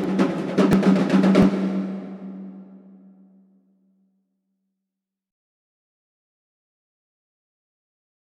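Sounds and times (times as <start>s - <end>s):
drum jam: 0.0s - 2.8s.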